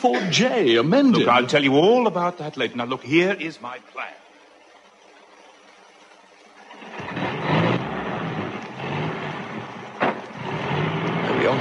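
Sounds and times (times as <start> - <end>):
speech: 0.0 - 4.2
10-ton truck engine rumbling and revving as it pulls away: 6.6 - 11.5.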